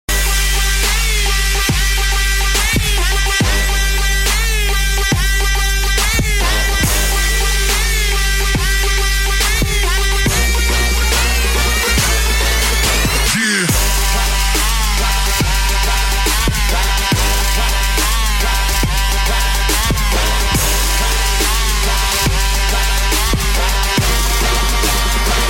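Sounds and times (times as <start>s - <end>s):
trap music: 0.1s - 25.4s.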